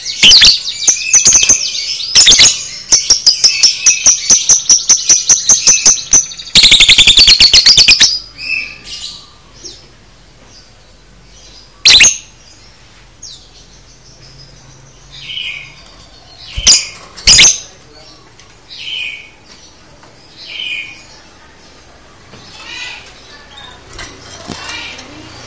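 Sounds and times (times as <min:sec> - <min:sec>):
lovebird chattering: 0:00.0 - 0:08.3, 0:11.8 - 0:12.3, 0:16.4 - 0:17.7, 0:22.4 - 0:25.4.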